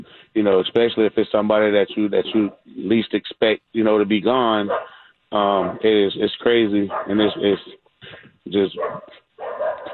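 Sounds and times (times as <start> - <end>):
speech: 0.4 - 9.9
dogs barking: 2.2 - 2.7, 4.6 - 6.0, 6.8 - 7.8, 8.7 - 9.9.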